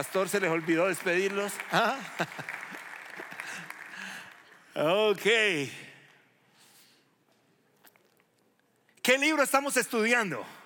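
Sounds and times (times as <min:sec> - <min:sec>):
speech: 0:00.0 - 0:02.7, 0:04.8 - 0:05.9, 0:09.0 - 0:10.6
applause for the young people: 0:00.0 - 0:05.7.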